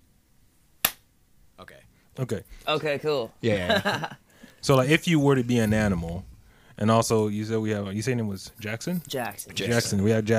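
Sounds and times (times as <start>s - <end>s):
single hand clap: 0.8s - 1.0s
speech: 2.2s - 10.3s.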